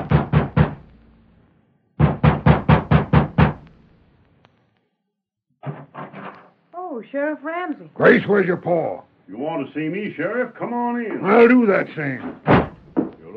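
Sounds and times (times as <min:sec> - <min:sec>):
knocking on a ranch house door: 0:00.0 - 0:00.9, 0:02.0 - 0:03.6, 0:12.2 - 0:13.3
speech: 0:07.0 - 0:12.5.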